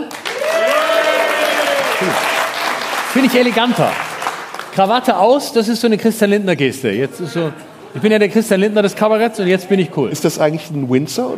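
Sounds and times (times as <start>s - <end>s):
audience applause for a vote: 0.0s - 5.0s
speech: 3.2s - 4.0s, 4.8s - 11.3s.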